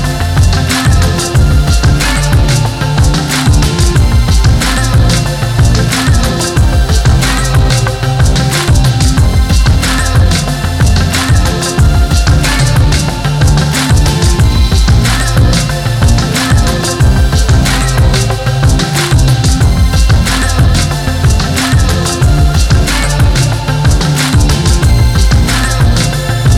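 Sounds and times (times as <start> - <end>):
hip hop music: 0.0 - 26.5.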